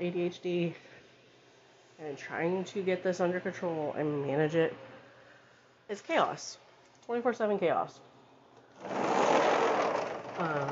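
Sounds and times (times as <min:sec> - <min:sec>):
speech: 0:00.0 - 0:01.0, 0:02.0 - 0:04.9, 0:05.9 - 0:08.1, 0:08.8 - 0:09.1, 0:10.4 - 0:10.7
sliding glass door being closed: 0:08.8 - 0:10.7.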